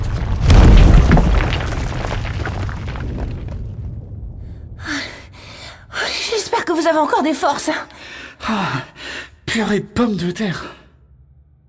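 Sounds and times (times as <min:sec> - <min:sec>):
gritty debris clattering: 0:00.0 - 0:04.0
massive stone ball crashing down: 0:00.0 - 0:04.8
speech: 0:06.8 - 0:10.8.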